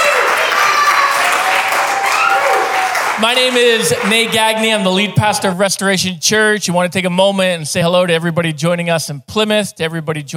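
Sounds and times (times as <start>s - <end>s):
congregation shouts and whoops: 0.0s - 3.2s
church congregation at Restoration Church in Dover applauding: 0.0s - 5.1s
speech: 3.2s - 10.3s.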